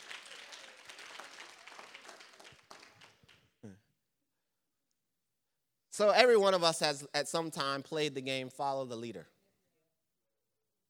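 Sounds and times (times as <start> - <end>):
audience applause: 0.0 - 3.4
speech: 6.0 - 9.4.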